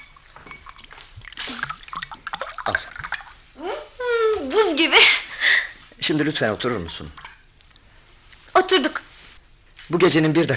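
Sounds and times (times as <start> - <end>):
fruit juice pouring into a glass: 0.5 - 3.5
speech: 2.7 - 2.9, 4.7 - 5.2, 6.1 - 7.2, 8.7 - 9.0, 9.9 - 10.5.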